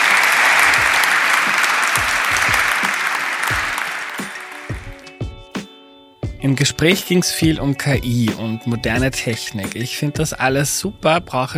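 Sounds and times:
audience applause: 0.0s - 5.1s
speech: 6.4s - 11.5s.

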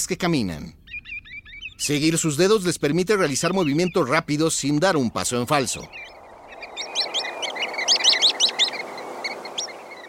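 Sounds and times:
speech: 0.0s - 0.8s, 1.8s - 6.2s
Sanderling calls: 0.8s - 2.1s, 5.2s - 10.0s
steady background hiss: 4.0s - 10.0s.

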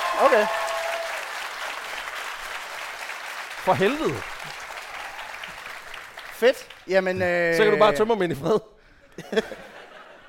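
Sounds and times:
audience clapping: 0.0s - 7.2s
speech: 0.2s - 0.6s, 3.6s - 4.6s, 6.4s - 9.7s
laughter: 9.1s - 10.2s.

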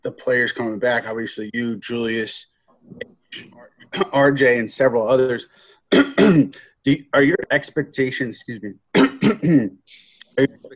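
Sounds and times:
speech: 0.0s - 10.7s
person coughing while choking on a potato chip: 5.9s - 6.6s, 9.0s - 9.8s.

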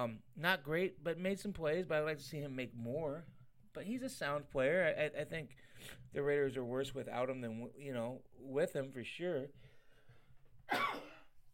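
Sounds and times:
speech: 0.0s - 9.7s
sneeze: 10.7s - 11.3s.

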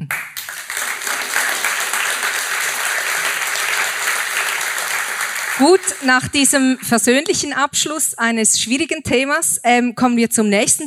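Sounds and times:
audience applause: 0.1s - 6.7s
speech: 5.6s - 10.8s.

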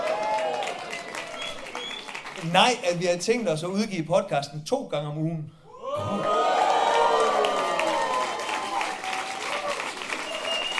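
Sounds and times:
whoops and cheers: 0.0s - 2.1s, 5.7s - 10.7s
crowd applause: 0.0s - 2.9s, 5.9s - 10.7s
speech: 2.4s - 6.3s.

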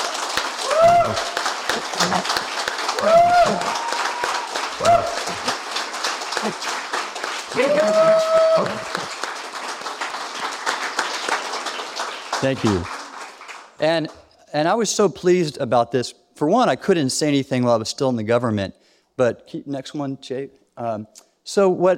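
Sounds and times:
audience applause: 0.0s - 13.8s
speech: 0.8s - 4.0s, 6.4s - 6.7s, 7.6s - 9.1s, 12.4s - 13.0s, 13.8s - 21.9s.

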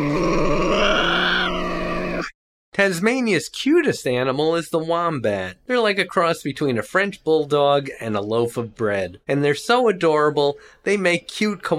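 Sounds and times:
Tasmanian devil screaming: 0.0s - 2.3s
speech: 2.8s - 11.7s.

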